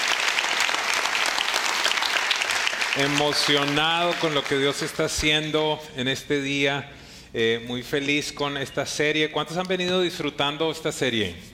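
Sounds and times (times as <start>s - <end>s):
audience applause: 0.0s - 5.0s
speech: 3.0s - 11.5s.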